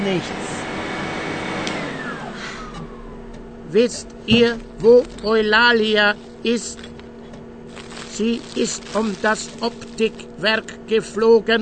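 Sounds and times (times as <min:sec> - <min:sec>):
household vacuum cleaner running: 0:00.0 - 0:03.5, 0:07.7 - 0:10.4
speech: 0:00.1 - 0:00.6, 0:03.7 - 0:06.9, 0:08.2 - 0:11.6.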